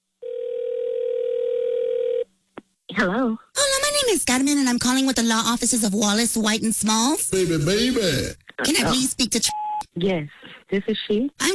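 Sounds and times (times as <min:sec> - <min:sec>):
telephone dial tone before a prank call: 0:00.2 - 0:02.2
speech: 0:03.0 - 0:03.4, 0:04.0 - 0:11.5.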